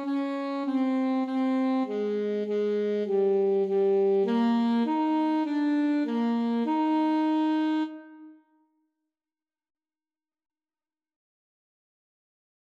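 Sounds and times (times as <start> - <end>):
alto saxophone duet: 0.0 - 8.4.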